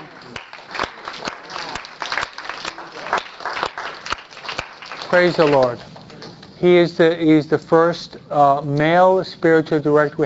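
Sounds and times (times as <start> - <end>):
audience applause: 0.0 - 5.8
speech: 5.1 - 5.9, 6.6 - 10.2.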